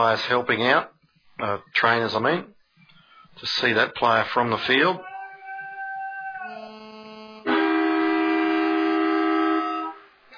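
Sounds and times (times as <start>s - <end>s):
speech: 0.0s - 2.6s, 3.4s - 5.1s
half-time siren at a football match: 5.4s - 10.1s.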